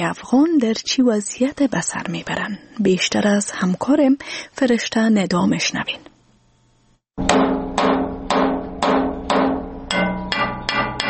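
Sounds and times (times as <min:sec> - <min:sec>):
speech: 0:00.0 - 0:06.1
blacksmith's hammer striking metal in Kabul: 0:07.2 - 0:11.0.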